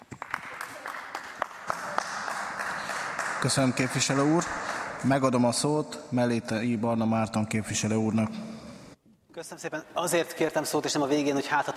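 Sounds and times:
applause: 0:00.0 - 0:05.3
speech: 0:03.4 - 0:08.5, 0:09.4 - 0:11.7.

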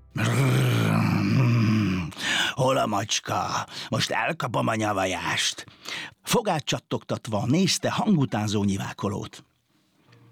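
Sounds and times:
person imitating an angry dog growling: 0:00.2 - 0:02.6
speech: 0:02.6 - 0:09.5.

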